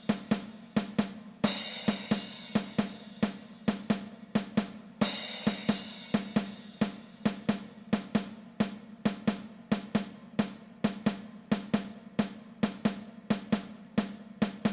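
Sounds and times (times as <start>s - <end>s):
drum kit percussion: 0.0s - 14.7s.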